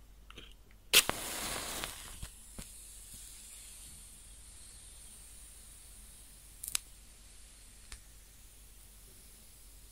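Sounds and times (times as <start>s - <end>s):
burning match crackling: 0.9s - 3.3s, 6.6s - 6.9s
bright flare of hiss: 0.9s - 8.5s.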